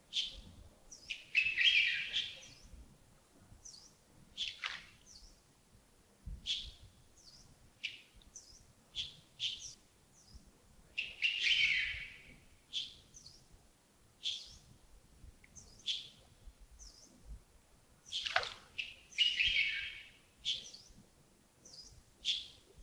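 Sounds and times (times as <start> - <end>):
birds in the early morning: 0.1 - 2.8, 3.6 - 5.4, 6.4 - 13.5, 18.0 - 21.0, 21.6 - 22.8.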